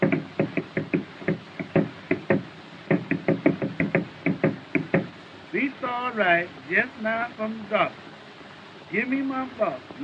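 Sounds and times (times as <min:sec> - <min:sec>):
foot stomping out a beat: 0:00.0 - 0:05.1
speech: 0:05.9 - 0:08.1, 0:08.9 - 0:10.0.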